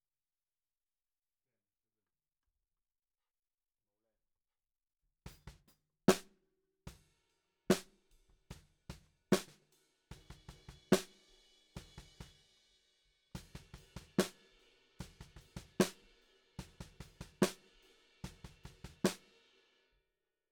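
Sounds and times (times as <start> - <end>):
snare drum: 5.3 - 6.3, 7.7 - 12.5, 13.4 - 19.4.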